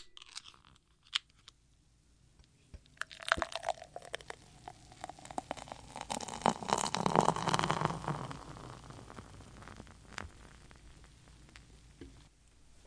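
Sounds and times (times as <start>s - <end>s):
can of American IPA beer being opened: 5.0s - 10.4s.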